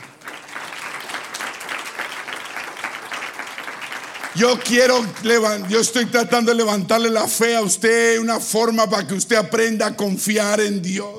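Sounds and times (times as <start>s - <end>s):
audience applause: 0.0s - 6.0s
speech: 4.4s - 11.1s.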